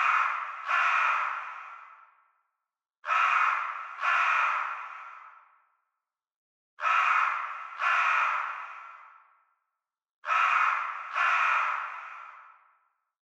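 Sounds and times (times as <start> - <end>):
crow calling: 0.0 - 2.2, 3.0 - 5.7, 6.8 - 9.4, 10.2 - 12.8.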